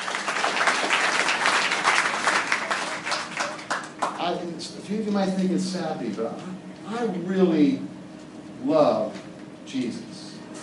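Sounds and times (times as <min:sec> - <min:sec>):
audience applause: 0:00.0 - 0:04.2
speech: 0:04.3 - 0:07.9, 0:08.6 - 0:10.0.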